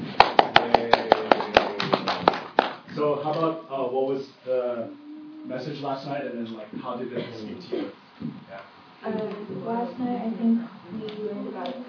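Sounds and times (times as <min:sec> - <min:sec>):
people clapping rhythmically to welcome someone at a gathering: 0:00.0 - 0:03.4, 0:11.0 - 0:11.8
speech: 0:03.0 - 0:11.8.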